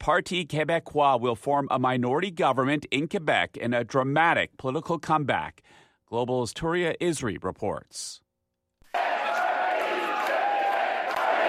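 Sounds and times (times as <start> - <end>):
speech: 0.0 - 8.2
crowd chanting at party headquarters: 8.9 - 11.4.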